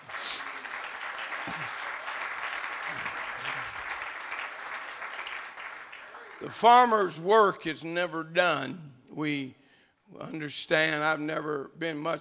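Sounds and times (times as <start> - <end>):
audience clapping hands: 0.0 - 7.2
speech: 1.5 - 1.8, 2.9 - 3.6, 6.4 - 12.2.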